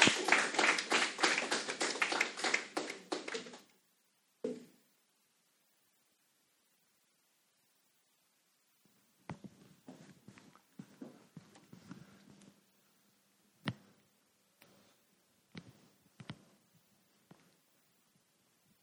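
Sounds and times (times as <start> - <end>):
audience applause welcoming a speaker in a chapel: 0.0 - 3.7.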